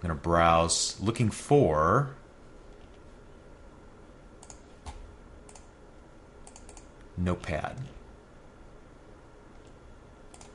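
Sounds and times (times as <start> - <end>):
speech: 0.0 - 2.2, 7.2 - 8.0
low hiss: 0.0 - 10.5
computer mouse clicks: 4.4 - 5.7, 6.4 - 7.1, 9.5 - 10.5.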